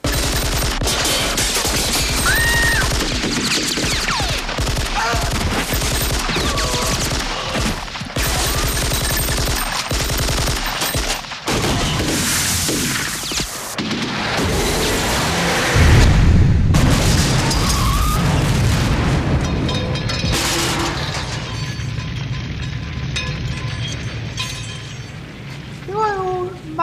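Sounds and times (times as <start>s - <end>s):
automatic weapon fire, comedic sound effect: 0.0s - 14.4s
booming explosions, comedic sound effect: 0.0s - 26.7s.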